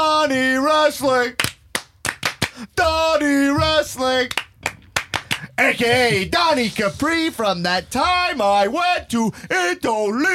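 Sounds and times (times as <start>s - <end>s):
speech: 0.3s - 1.4s, 2.6s - 4.4s, 5.6s - 10.3s
hand clap: 1.4s - 2.6s, 4.2s - 5.5s.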